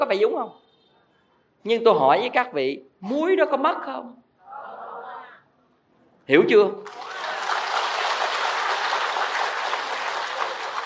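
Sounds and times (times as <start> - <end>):
speech: 0.0 - 0.6, 1.6 - 4.2, 6.3 - 7.2
audience applause during a Buddhist dharma talk: 6.8 - 10.8.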